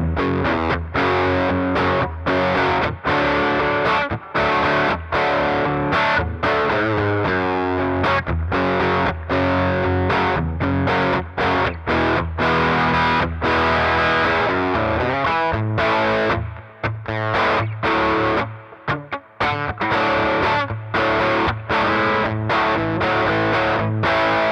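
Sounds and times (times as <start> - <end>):
low gain classic rock electric guitar with cutting mids and subtle delay through 6V6 amp: 0.0 - 24.5.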